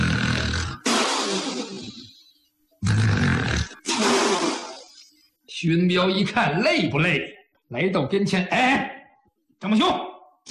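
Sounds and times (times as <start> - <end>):
voice imitating heavy thunderous snoring: 0.0 - 2.2, 2.8 - 5.1
speech: 5.6 - 9.0, 9.6 - 10.4.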